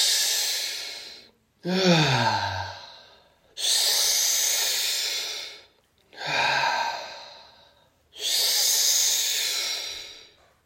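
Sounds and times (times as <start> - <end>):
deep breathing during a guided breathwork exercise: 0.0 - 10.6
low voiced sigh: 0.6 - 3.2, 6.2 - 10.3.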